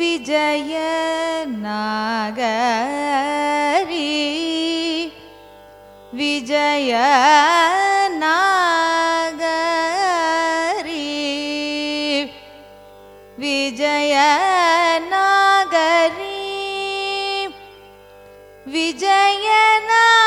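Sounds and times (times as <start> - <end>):
carnatic raga music: 0.0 - 20.2.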